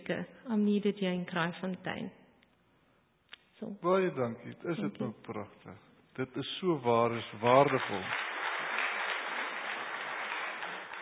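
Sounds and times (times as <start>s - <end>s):
speech: 0.1s - 2.2s, 3.6s - 8.2s
audience applause, hands clapping: 7.0s - 11.0s.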